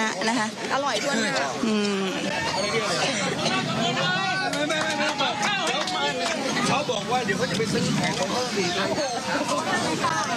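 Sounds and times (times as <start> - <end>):
villagers cheering and chattering: 0.0 - 10.3
speech: 0.1 - 5.2, 6.1 - 10.3
roadside villagers clapping: 3.3 - 10.3.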